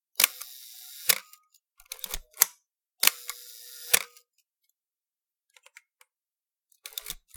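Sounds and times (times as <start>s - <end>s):
film camera running: 0.2s - 1.4s, 3.0s - 4.2s.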